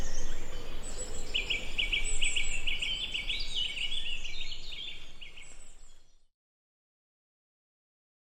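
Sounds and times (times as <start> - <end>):
birdsong: 0.0 - 6.3.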